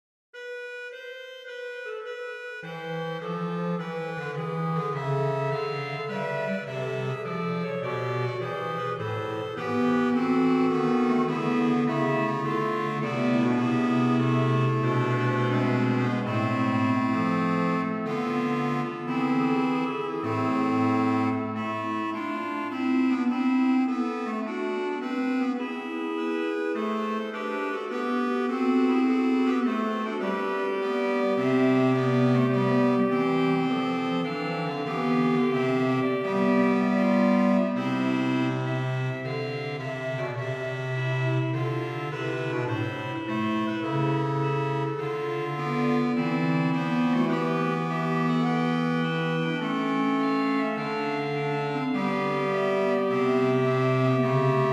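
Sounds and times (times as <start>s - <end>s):
organ fugue on cromorne stop at Souvigny: 0.4s - 54.7s.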